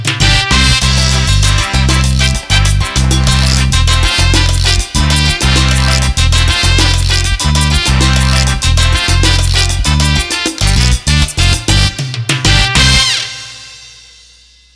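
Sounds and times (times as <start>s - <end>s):
salsa music on a keyboard: 0.0s - 13.8s.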